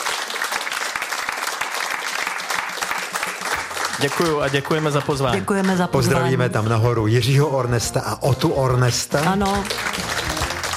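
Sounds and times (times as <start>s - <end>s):
audience applause: 0.0s - 6.4s, 9.1s - 10.7s
speech: 4.0s - 10.0s.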